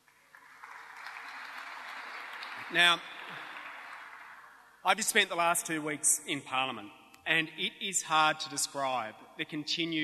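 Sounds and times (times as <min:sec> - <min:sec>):
audience applause: 0:00.0 - 0:04.7
speech: 0:02.7 - 0:03.4, 0:04.8 - 0:10.0.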